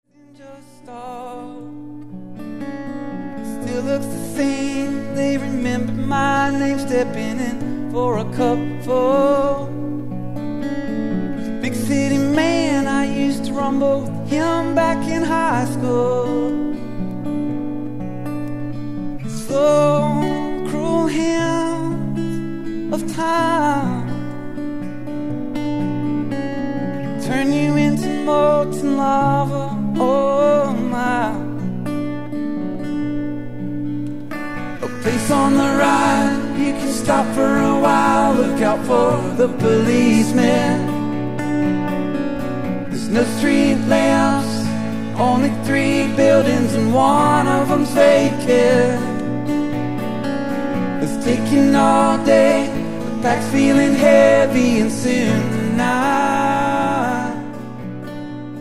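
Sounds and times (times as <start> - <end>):
acoustic music: 0.0 - 58.5.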